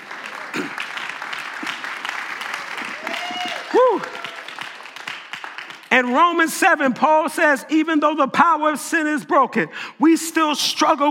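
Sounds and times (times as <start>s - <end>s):
audience clapping hands: 0.0s - 7.1s
speech: 6.0s - 11.0s.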